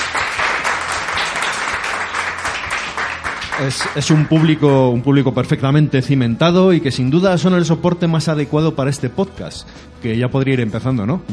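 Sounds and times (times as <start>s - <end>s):
sustained dense audience applause: 0.0s - 4.6s
speech: 3.6s - 11.3s.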